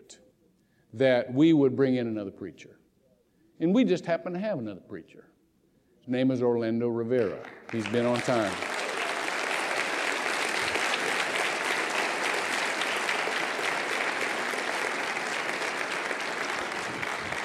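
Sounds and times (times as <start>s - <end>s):
speech: 0.9s - 2.8s, 3.6s - 5.3s, 6.1s - 8.7s
audience applause: 7.2s - 17.4s.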